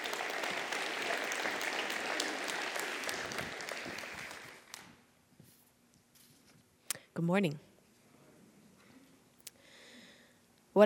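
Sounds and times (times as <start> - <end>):
audience applause of welcome: 0.0 - 4.9
speech: 7.2 - 7.7.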